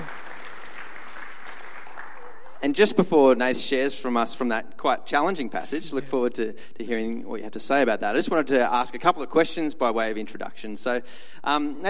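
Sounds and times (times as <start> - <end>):
congregation applause welcoming a guest speaker at a church service: 0.0 - 3.0
speech: 2.6 - 11.8.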